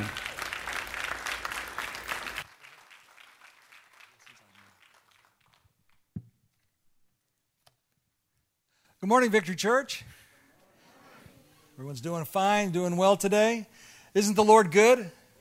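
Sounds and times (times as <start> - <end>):
audience applause at a church mission conference welcoming missionary guests: 0.0 - 5.8
speech: 9.0 - 10.2, 11.8 - 15.2.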